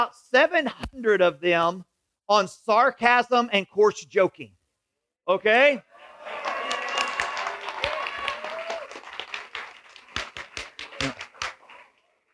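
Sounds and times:
speech: 0.0s - 4.6s, 5.3s - 6.4s
audience applause: 6.1s - 11.8s.

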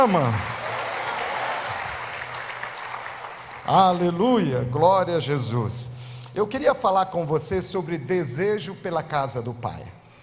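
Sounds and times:
speech: 0.0s - 0.6s, 3.7s - 10.0s
audience applause: 0.0s - 4.3s.

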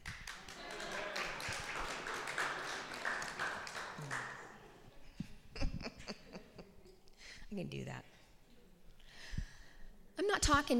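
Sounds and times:
audience clapping: 0.0s - 4.8s
laughter: 0.4s - 7.0s
speech: 7.5s - 8.1s, 10.5s - 10.7s.

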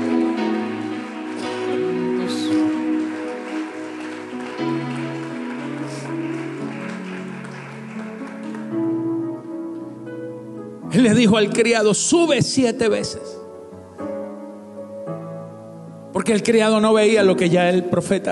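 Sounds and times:
audience applauding: 0.0s - 9.5s
speech: 11.0s - 13.4s, 16.2s - 18.3s.

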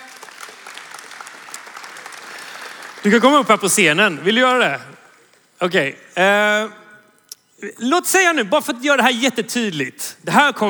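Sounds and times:
audience applause: 0.0s - 3.4s
speech: 3.0s - 5.0s, 5.6s - 6.8s, 7.6s - 10.6s.

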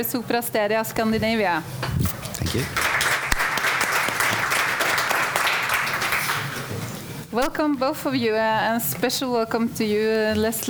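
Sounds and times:
speech: 0.0s - 3.0s, 7.3s - 10.6s
audience applause at a panel event: 2.4s - 7.3s.

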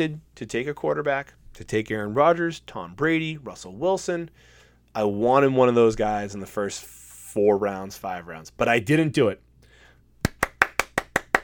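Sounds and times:
speech: 0.0s - 9.4s
hand clapping: 10.2s - 11.4s.

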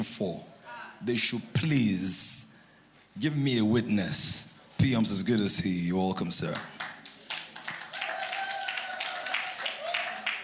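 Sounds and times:
speech: 0.1s - 2.4s, 3.2s - 6.9s
crowd clapping: 6.4s - 10.4s.

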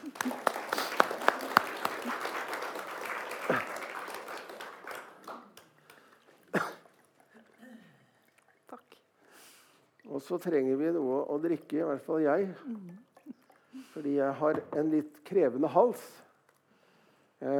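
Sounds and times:
audience applause: 0.0s - 6.4s
cough-like sound: 3.4s - 3.8s, 6.5s - 8.0s
speech: 10.2s - 13.0s, 14.0s - 16.2s.

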